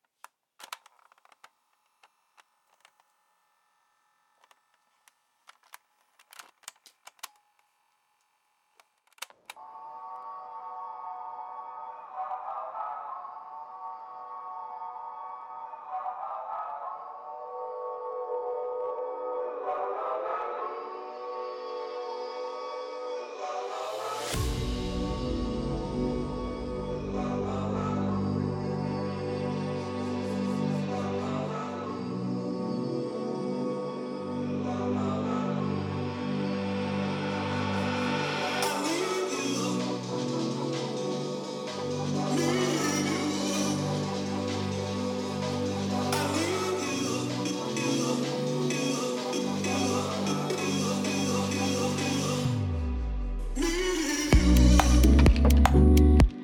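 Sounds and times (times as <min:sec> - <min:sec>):
Motown a cappella vocals: 0:09.6 - 0:56.4
future garage music: 0:37.1 - 0:56.4.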